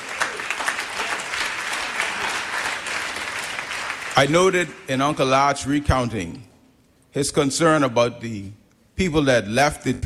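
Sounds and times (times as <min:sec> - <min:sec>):
church audience applause: 0:00.0 - 0:04.5
speech: 0:04.2 - 0:06.5, 0:07.1 - 0:10.0.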